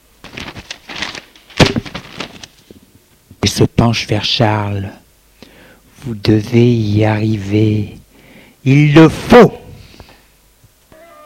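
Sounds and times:
sheets of paper landing on a table: 0.2 - 2.6
papers rustling: 0.2 - 2.9
speech: 3.6 - 5.0, 6.0 - 8.0, 8.6 - 9.6.

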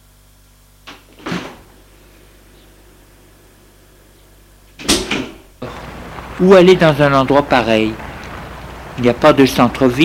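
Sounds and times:
door opening: 0.9 - 1.8, 4.7 - 6.4
speech: 6.4 - 8.0, 9.0 - 10.0.

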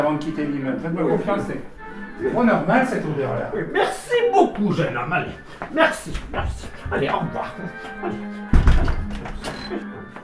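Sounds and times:
speech: 0.0 - 10.0
laughter: 1.0 - 10.2
heavy door shutting: 8.5 - 9.9.

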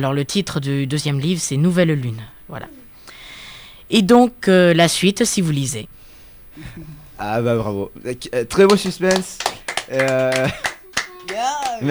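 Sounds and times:
speech: 0.0 - 2.8, 3.9 - 6.0, 6.6 - 11.8
hand claps from two people: 8.6 - 11.8
laughter: 8.7 - 11.8.

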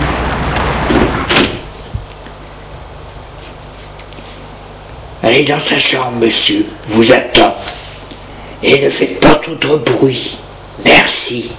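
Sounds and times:
low steady hum: 0.0 - 11.5
door closing with latch click: 0.9 - 1.6
speech: 5.3 - 7.8, 8.6 - 11.5.

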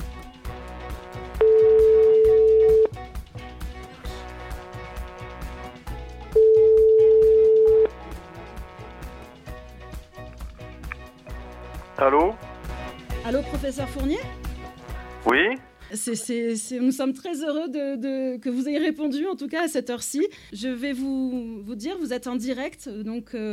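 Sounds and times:
rhythmic musical backing: 0.0 - 15.8
telephone ringback tone while calling an anthropologist professor: 1.4 - 2.9, 6.4 - 7.9
speech: 13.7 - 14.4, 15.3 - 23.5.

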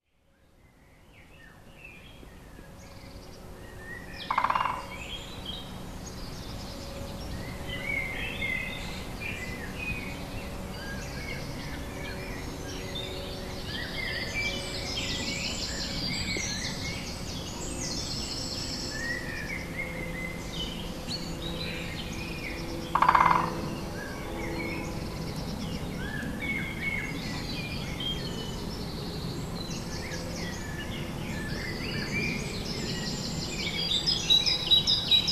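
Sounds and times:
other birds near the lone: 0.5 - 35.3
woodpecker near the lone: 4.2 - 5.2, 22.5 - 23.7.

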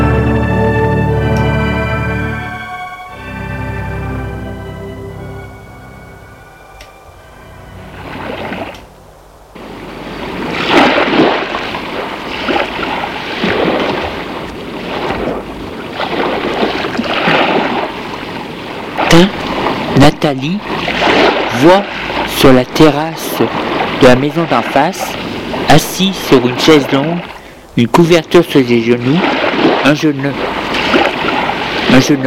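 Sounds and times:
sea waves: 0.0 - 32.2
speech: 20.2 - 21.0, 21.6 - 30.6, 31.9 - 32.2.

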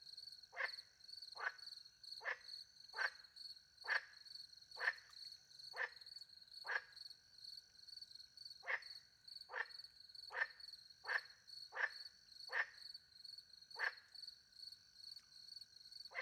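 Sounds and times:
frog croaking: 0.5 - 0.8, 1.4 - 4.2, 4.8 - 5.1, 5.7 - 6.0, 6.6 - 7.0, 8.6 - 12.9, 13.7 - 14.1.

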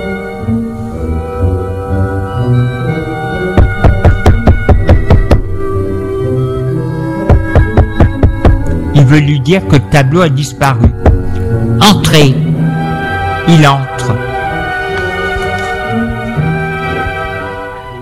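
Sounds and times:
sustained music-like tones: 0.0 - 18.0
knocking on a bedroom door: 3.6 - 5.4, 7.3 - 8.6, 10.9 - 11.2
speech: 9.1 - 11.2, 11.8 - 12.5, 13.5 - 14.2.

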